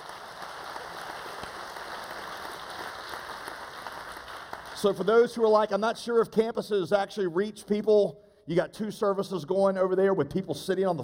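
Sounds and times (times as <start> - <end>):
audience applause: 0.0 - 5.3
speech: 4.8 - 11.0.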